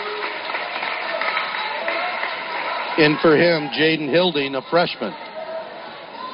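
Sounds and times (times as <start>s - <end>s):
crowd applause for player leaving game: 0.0s - 4.8s
speech: 3.0s - 5.3s.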